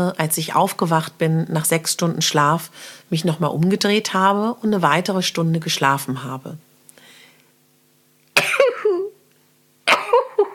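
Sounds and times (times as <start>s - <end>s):
speech: 0.0s - 6.7s
person sneezing: 8.4s - 9.2s.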